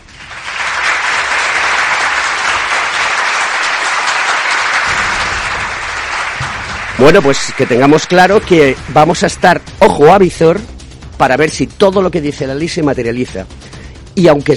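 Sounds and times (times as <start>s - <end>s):
applause: 0.0s - 10.0s
speech: 7.0s - 13.6s, 14.2s - 14.5s.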